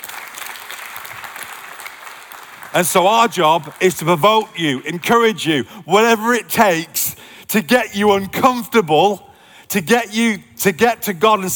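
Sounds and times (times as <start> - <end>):
crowd applause: 0.0 - 5.0
speech: 2.7 - 11.5.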